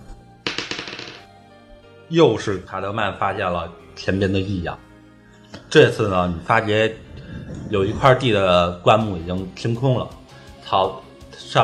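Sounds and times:
dice being rolled: 0:00.5 - 0:01.3
speech: 0:02.1 - 0:04.9, 0:05.7 - 0:07.0, 0:07.7 - 0:11.6.

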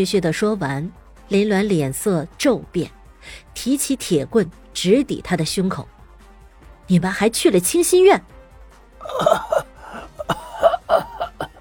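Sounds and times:
speech: 0:00.0 - 0:05.9, 0:06.9 - 0:08.3, 0:09.0 - 0:09.7
rasping, strained breaths: 0:09.0 - 0:11.5
struggling man in black coughing: 0:09.0 - 0:11.5.

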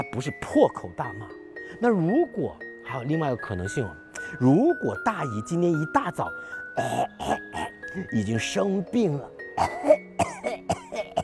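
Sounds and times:
speech: 0:00.0 - 0:10.0
acted coughing: 0:06.8 - 0:08.1, 0:09.6 - 0:11.2.

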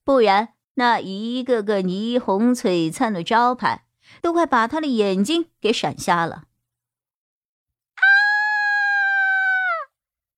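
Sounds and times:
speech: 0:00.1 - 0:06.5
distant woman screaming: 0:08.0 - 0:09.9.

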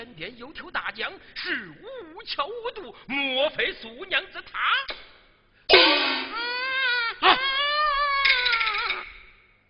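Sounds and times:
speech: 0:00.0 - 0:05.1
infant crying in the reeds: 0:06.3 - 0:09.2.

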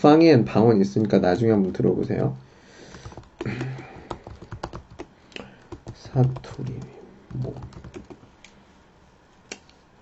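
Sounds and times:
speech: 0:00.0 - 0:02.5, 0:03.4 - 0:03.9, 0:06.1 - 0:08.0
quiet computer keyboard typing: 0:00.9 - 0:01.9, 0:02.9 - 0:08.3.

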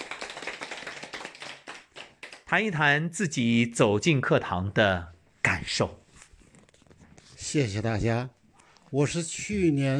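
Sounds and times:
audience applause: 0:00.0 - 0:02.4
speech: 0:02.5 - 0:06.0, 0:07.5 - 0:09.9.

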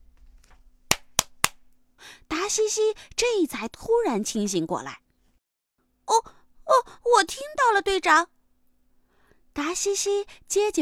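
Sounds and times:
hands clapping hard: 0:00.9 - 0:01.6
speech: 0:02.5 - 0:05.0, 0:07.1 - 0:08.4, 0:09.6 - 0:10.8.

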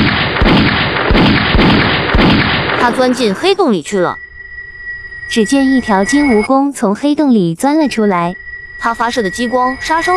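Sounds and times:
cannon shots in Super Mario Odyssey: 0:00.0 - 0:03.2
Super Mario Odyssey game sound: 0:00.0 - 0:10.1
speech: 0:02.8 - 0:04.2, 0:05.3 - 0:10.1.

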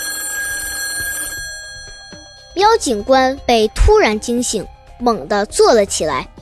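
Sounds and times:
telephone ringing urgently: 0:00.0 - 0:03.5
speech: 0:02.6 - 0:06.3.

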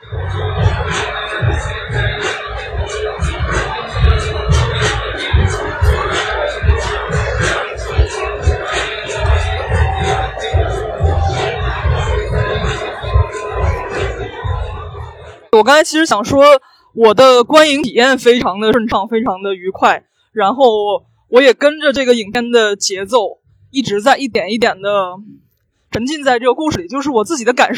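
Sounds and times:
street party noise at night: 0:00.0 - 0:17.8
speech: 0:15.6 - 0:27.7.

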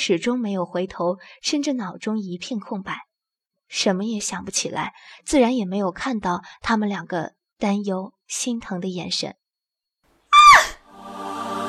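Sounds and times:
speech: 0:00.0 - 0:03.1, 0:03.7 - 0:09.4
woman screaming: 0:10.3 - 0:10.8
steady sustained tone: 0:10.9 - 0:11.6.

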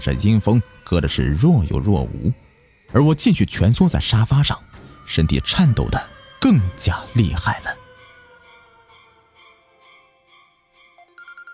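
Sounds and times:
speech: 0:00.0 - 0:07.8
telephone ringing: 0:11.0 - 0:11.5.

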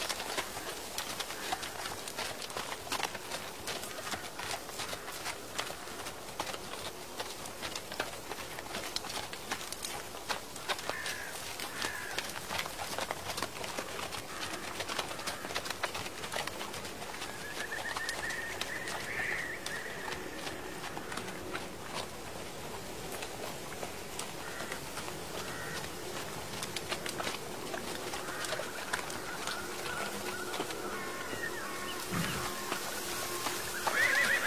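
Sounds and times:
dry leaves crackling: 0:00.0 - 0:34.4
horse hooves clopping along an old road: 0:00.0 - 0:34.4
birds calling: 0:03.3 - 0:06.6, 0:10.6 - 0:13.0, 0:13.7 - 0:22.8, 0:23.4 - 0:34.4.

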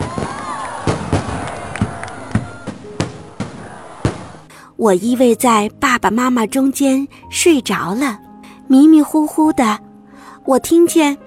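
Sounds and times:
firecrackers crackling: 0:00.0 - 0:04.5
speech: 0:04.8 - 0:11.2.

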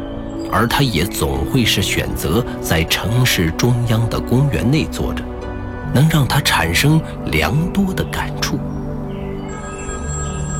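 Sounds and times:
speech: 0:00.5 - 0:08.8
mobile phone ringing: 0:09.6 - 0:10.5.

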